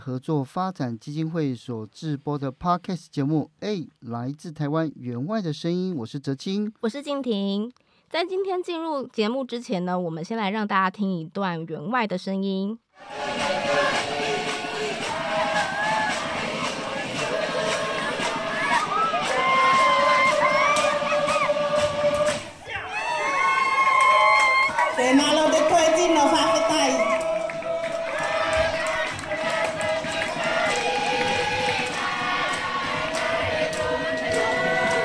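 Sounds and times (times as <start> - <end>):
speech: 0.0 - 14.0
Tuvaluan traditional dance music sung by many voices: 13.0 - 22.6, 24.9 - 35.0
crowd cheering and shouting: 13.0 - 35.0.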